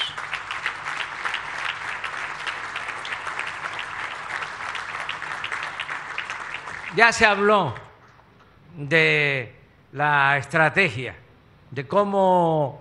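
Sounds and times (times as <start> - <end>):
crowd applauding: 0.0 - 7.9
speech: 7.0 - 7.8, 8.8 - 12.7.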